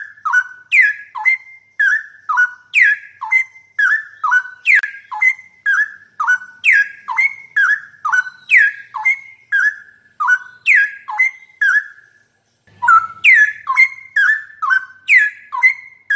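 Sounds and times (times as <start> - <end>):
straw-headed bulbul song: 0.0 - 16.1.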